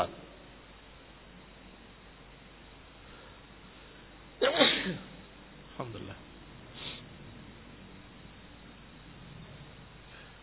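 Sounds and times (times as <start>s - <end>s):
speech: 0.0s - 0.2s, 5.8s - 6.3s
sneeze: 4.4s - 5.2s.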